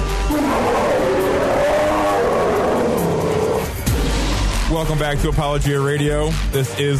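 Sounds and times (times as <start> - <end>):
bear roaring: 0.2 - 4.4
speech: 4.8 - 6.9.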